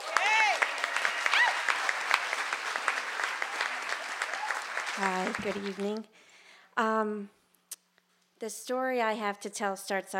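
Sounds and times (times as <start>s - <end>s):
audience applause: 0.0s - 6.0s
speech: 5.0s - 6.2s, 6.8s - 7.4s, 8.4s - 10.1s.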